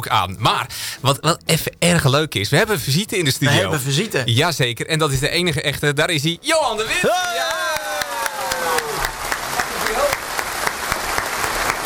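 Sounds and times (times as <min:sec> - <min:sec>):
speech: 0:00.0 - 0:07.6
studio audience clapping: 0:06.8 - 0:11.8.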